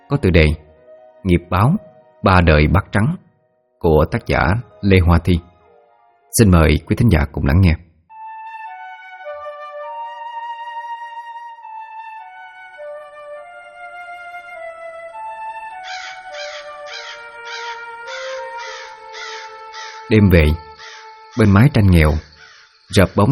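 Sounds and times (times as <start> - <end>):
speech: 0.1 - 0.6, 1.2 - 3.2, 3.8 - 5.5, 6.3 - 7.8, 20.1 - 20.6, 21.4 - 22.3, 22.9 - 23.3
crows cawing in the yard: 15.7 - 21.4, 22.2 - 22.9.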